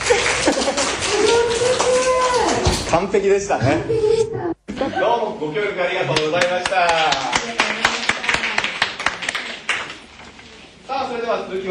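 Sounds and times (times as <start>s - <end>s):
applause: 0.0s - 2.8s, 6.2s - 10.2s
speech: 2.9s - 7.8s, 11.1s - 11.6s.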